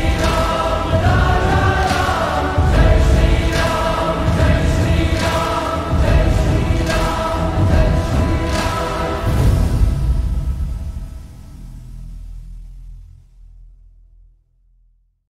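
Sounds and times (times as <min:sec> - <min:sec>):
slowed lo-fi music with reverb: 0:00.0 - 0:11.7.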